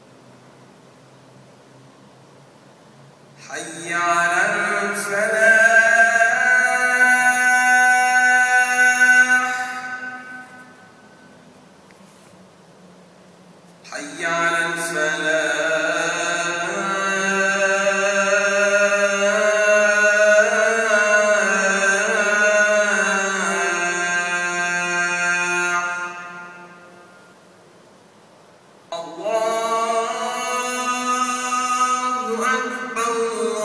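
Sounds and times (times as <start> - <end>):
Adhan call to prayer at the Grand Mosque in Bahrain: 3.4 - 11.4, 13.8 - 27.4, 28.9 - 33.6.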